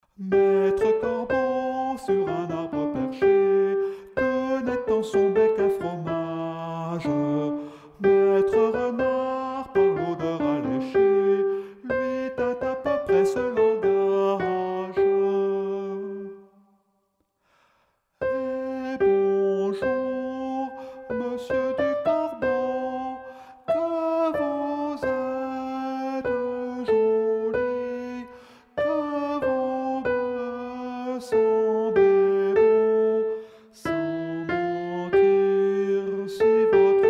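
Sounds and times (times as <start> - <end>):
soprano singing: 0.0 - 16.7, 18.2 - 37.0.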